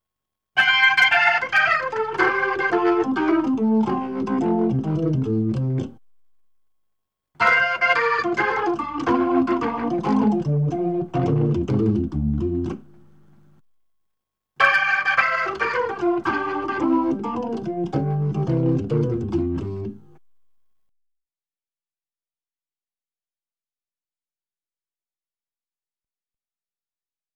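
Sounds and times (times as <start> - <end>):
Hammond B3 organ: 0.6 - 6.0, 7.4 - 12.9, 14.6 - 20.2.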